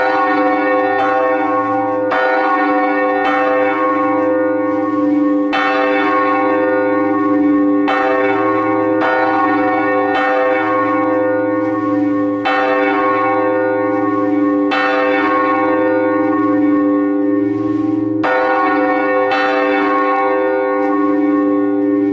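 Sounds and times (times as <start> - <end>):
church bell ringing: 0.0 - 22.1.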